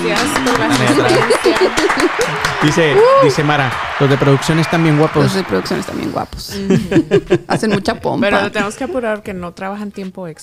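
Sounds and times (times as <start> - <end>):
applause: 0.0 - 6.3
laughter: 0.0 - 9.0
speech: 0.0 - 10.4.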